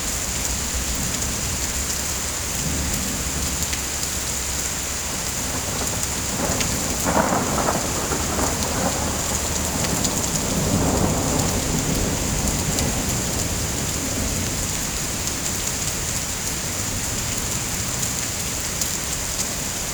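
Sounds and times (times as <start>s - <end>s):
rain: 0.0s - 19.9s
thunder: 5.2s - 15.0s.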